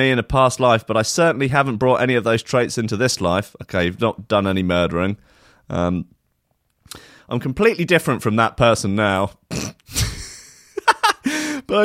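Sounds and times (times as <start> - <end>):
speech: 0.0 - 6.2, 6.9 - 10.0, 11.7 - 11.8
person sneezing: 9.5 - 10.3
laughter: 10.2 - 11.5.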